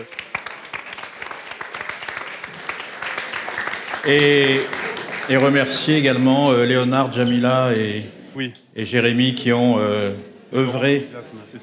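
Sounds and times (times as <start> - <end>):
speech: 0.0 - 0.2, 4.0 - 11.6
audience applause: 0.0 - 7.1.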